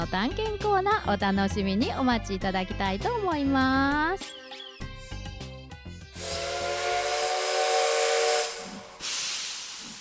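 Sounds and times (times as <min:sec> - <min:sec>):
speech: 0:00.1 - 0:04.4
steam whistle: 0:06.2 - 0:09.6.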